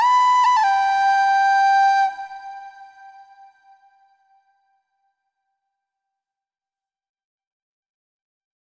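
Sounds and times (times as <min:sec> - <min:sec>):
flute melodies: 0:00.0 - 0:04.0.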